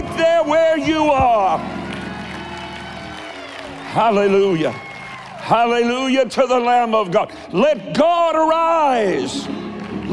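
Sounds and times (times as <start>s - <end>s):
crowd noise: 0.0s - 10.1s
speech: 0.2s - 1.8s, 3.9s - 10.1s
audience clapping: 1.4s - 6.3s, 9.2s - 10.1s.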